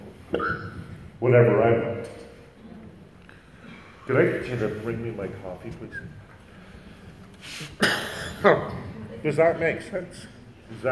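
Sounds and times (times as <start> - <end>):
speech: 1.2 - 2.2, 4.1 - 6.2, 7.6 - 10.8
coughing fit: 7.7 - 8.6.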